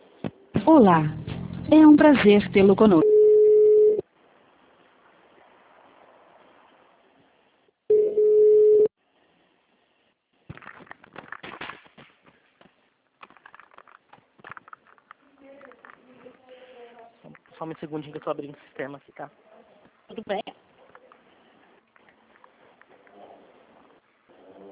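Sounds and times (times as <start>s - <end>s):
speech: 0.7s - 3.1s, 17.8s - 19.5s, 20.1s - 20.6s
telephone beeps during call transfer: 3.0s - 4.0s, 7.9s - 8.9s
telephone line hiss: 7.9s - 8.9s.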